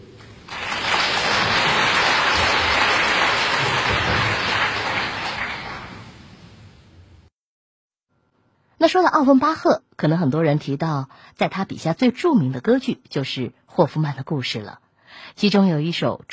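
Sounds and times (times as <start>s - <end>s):
audience applause: 0.2s - 6.2s
speech: 8.8s - 16.3s.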